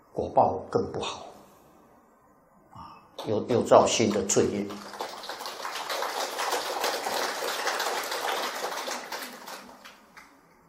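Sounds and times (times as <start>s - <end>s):
speech: 0.2s - 1.3s, 3.2s - 5.0s
audience applause: 4.0s - 10.1s.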